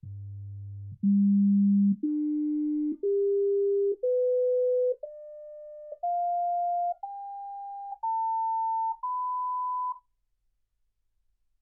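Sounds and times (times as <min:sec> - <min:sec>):
sine tones: 0:01.0 - 0:10.0.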